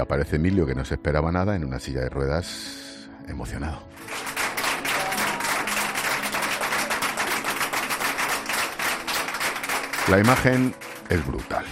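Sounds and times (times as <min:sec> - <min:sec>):
speech: 0:00.0 - 0:04.2, 0:10.1 - 0:11.7
hospital staff applauding in a corridor: 0:04.0 - 0:11.7.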